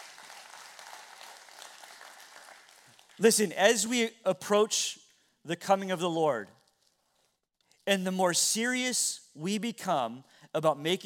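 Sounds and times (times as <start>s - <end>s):
audience clapping: 0.0s - 3.3s
speech: 3.2s - 6.6s, 7.9s - 11.0s.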